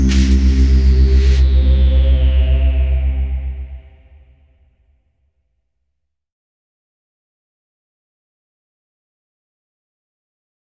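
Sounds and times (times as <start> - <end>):
wondrous bass run: 0.0 - 4.5.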